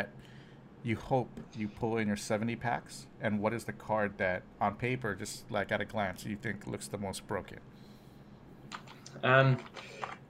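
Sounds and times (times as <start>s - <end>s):
speech: 0.8s - 7.8s, 9.2s - 10.2s
typing on a computer keyboard to search Google: 8.7s - 10.2s.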